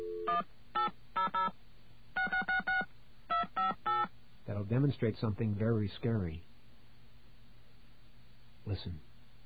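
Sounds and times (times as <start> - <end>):
touch-tone dialing beeps: 0.2 - 1.5, 2.2 - 4.1
speech: 4.7 - 6.5, 8.7 - 9.1.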